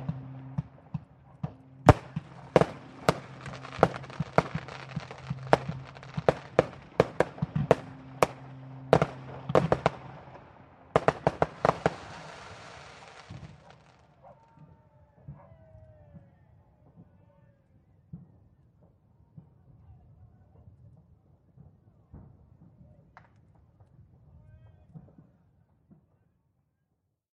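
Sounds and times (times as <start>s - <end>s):
new year ship foghorns: 0.0s - 13.7s.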